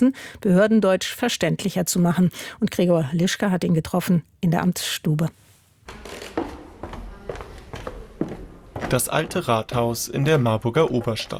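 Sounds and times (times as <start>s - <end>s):
speech: 0.0s - 6.4s, 8.9s - 11.3s
footsteps on creaking wooden floorboards: 5.8s - 11.3s.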